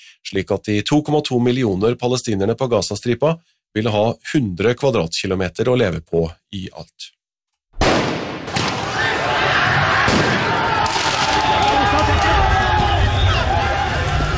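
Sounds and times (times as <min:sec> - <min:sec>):
speech: 0:00.2 - 0:07.2
sharp bangs: 0:07.8 - 0:09.1, 0:10.0 - 0:13.0
rioting crowd shouting in France after Paris Saint-Germain won the Champions League: 0:08.4 - 0:14.3.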